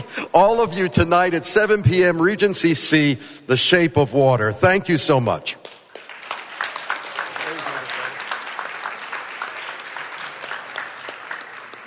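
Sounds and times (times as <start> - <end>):
speech: 0.4 - 5.6
audience applause: 5.9 - 11.8.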